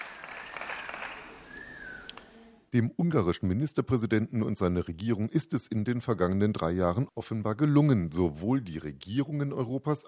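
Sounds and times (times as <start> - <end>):
faint applause after Viktor Orbán's speech: 0.0 - 2.4
thin high whistle: 0.3 - 2.2
speech: 2.7 - 10.0.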